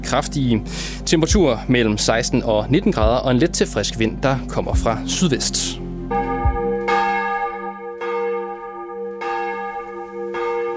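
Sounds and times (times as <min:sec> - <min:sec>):
speech: 0:00.1 - 0:05.8
church bells ringing for morning prayer from Vor Frue Kirke in Copenhagen: 0:04.7 - 0:10.7.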